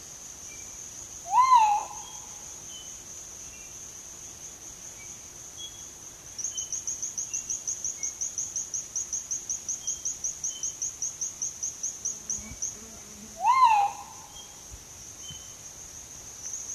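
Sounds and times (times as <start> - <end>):
Crinkle-collared manucode giving slurred whistled calls: 1.3 - 2.2, 13.4 - 14.6.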